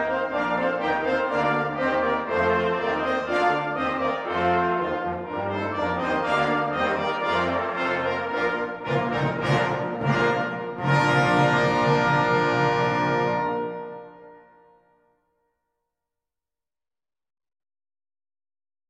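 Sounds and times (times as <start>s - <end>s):
cimbasso march: 0.0s - 14.6s.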